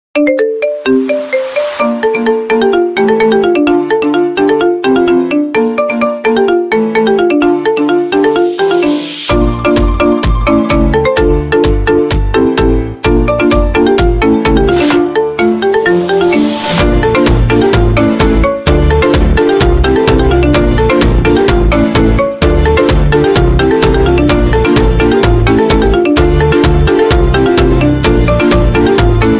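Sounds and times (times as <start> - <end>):
Chinese phonk remix with echoing marimba: 0.2 - 29.3.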